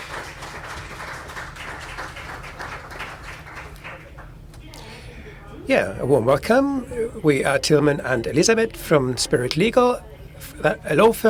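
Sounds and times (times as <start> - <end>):
audience applause: 0.0 - 4.5
speech: 5.7 - 11.2.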